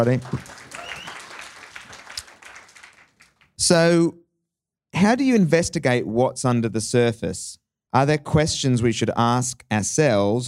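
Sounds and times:
speech: 0.0s - 0.6s, 3.6s - 4.2s, 4.9s - 10.4s
audience applause: 0.0s - 3.5s.

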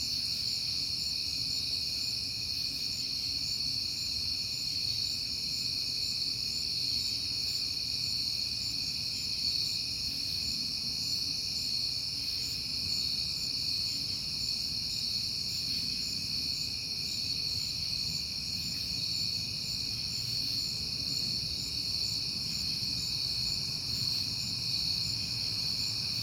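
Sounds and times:
crickets chirping: 0.0s - 26.2s.

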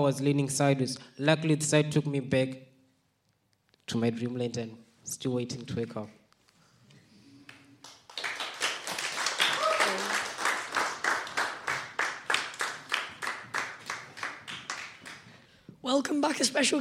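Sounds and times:
speech: 0.0s - 2.7s, 3.9s - 6.2s, 16.0s - 16.7s
audience clapping: 7.4s - 15.5s.

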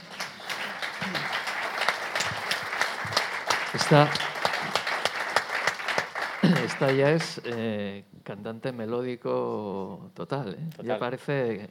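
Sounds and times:
audience applause: 0.0s - 7.6s
speech: 3.8s - 4.3s, 6.4s - 11.6s.

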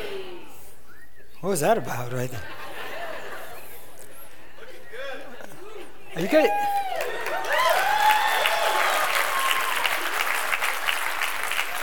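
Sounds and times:
speech: 1.4s - 2.6s, 6.2s - 6.7s
laughter: 2.0s - 7.5s
audience clapping: 6.2s - 11.8s.

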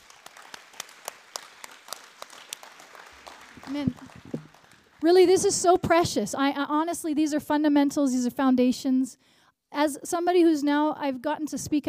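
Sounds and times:
audience clapping hands: 0.0s - 5.5s
speech: 3.6s - 4.4s, 5.0s - 11.8s.

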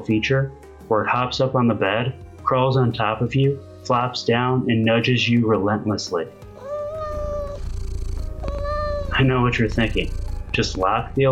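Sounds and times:
speech: 0.0s - 6.4s, 9.2s - 11.3s
cat meowing: 6.6s - 10.6s.

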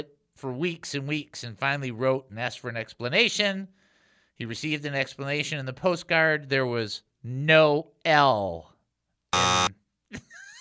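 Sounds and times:
speech: 0.0s - 3.8s, 4.4s - 8.7s, 9.3s - 10.2s
loud harsh buzzer: 9.4s - 9.8s.

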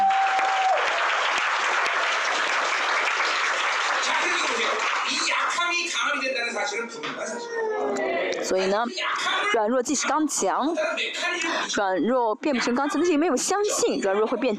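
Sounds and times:
voices cheering: 0.0s - 5.3s
audience applause: 0.0s - 6.2s
speech: 6.2s - 14.5s.

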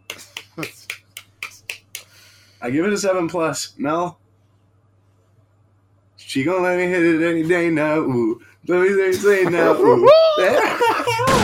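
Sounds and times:
hands clapping: 0.0s - 2.2s
speech: 0.6s - 0.8s, 2.6s - 4.2s, 6.3s - 11.4s
laughter: 9.1s - 11.4s.

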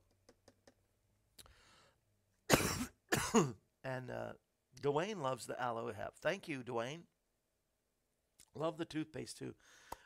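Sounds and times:
soft breath: 1.4s - 2.0s
person coughing: 2.5s - 3.6s
speech: 3.3s - 7.1s, 8.5s - 9.9s.

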